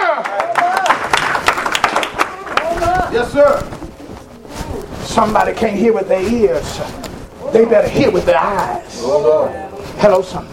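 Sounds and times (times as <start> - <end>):
audience hand clapping: 0.0 - 3.7
speech: 3.1 - 3.7, 5.2 - 10.5.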